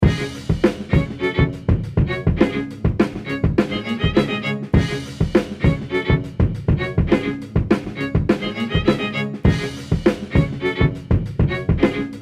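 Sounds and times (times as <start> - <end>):
music sting: 0.0 - 12.1.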